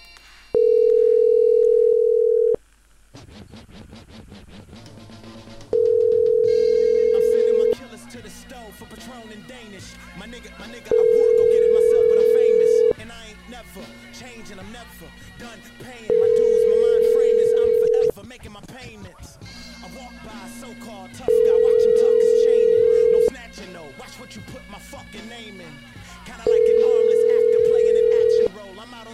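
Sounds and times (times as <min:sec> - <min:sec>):
telephone ringback tone while calling Air Canada: 0:00.6 - 0:02.6, 0:05.8 - 0:07.8, 0:10.9 - 0:13.0, 0:16.1 - 0:18.1, 0:21.3 - 0:23.3, 0:26.5 - 0:28.5.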